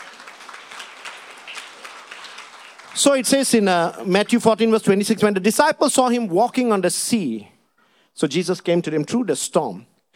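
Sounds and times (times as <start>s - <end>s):
congregation clapping during a church service: 0.0s - 4.8s
speech: 3.0s - 7.5s, 8.2s - 10.1s.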